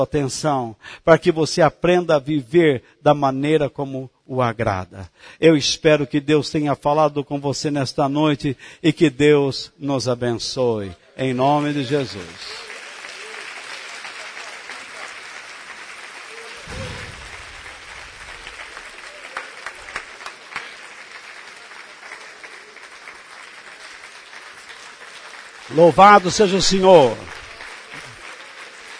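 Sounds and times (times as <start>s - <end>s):
speech: 0.0s - 12.7s, 25.8s - 27.4s
audience applause: 11.3s - 28.9s.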